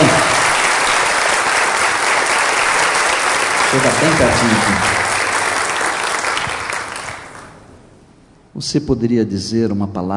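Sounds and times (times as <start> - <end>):
auditorium audience applause: 0.0 - 7.6
speech: 3.8 - 5.0, 8.6 - 10.1.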